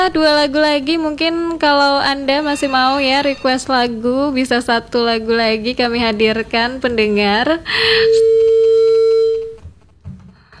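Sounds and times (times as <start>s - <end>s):
speech: 0.0s - 8.5s
faint low noise: 0.0s - 10.5s
telephone line cut-off tone during a radio call-in: 2.4s - 3.7s, 7.8s - 9.8s.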